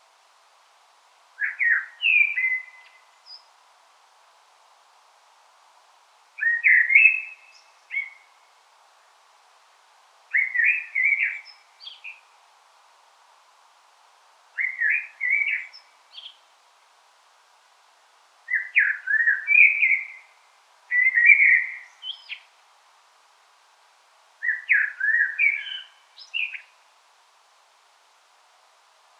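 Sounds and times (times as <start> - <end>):
Common blackbird fluty warbling song: 1.4 - 3.0, 6.4 - 8.2, 10.3 - 12.2, 14.6 - 16.4, 18.5 - 20.2, 20.9 - 22.4, 24.4 - 26.7.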